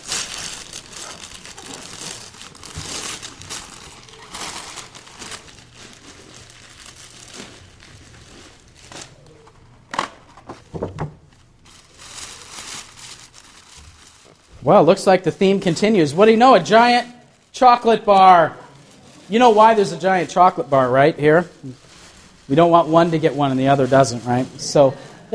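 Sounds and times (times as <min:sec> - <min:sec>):
wrapping paper being ripped open on a gift: 0:00.0 - 0:09.8, 0:11.4 - 0:24.9
speech: 0:14.7 - 0:18.6, 0:19.3 - 0:21.8, 0:22.5 - 0:25.3.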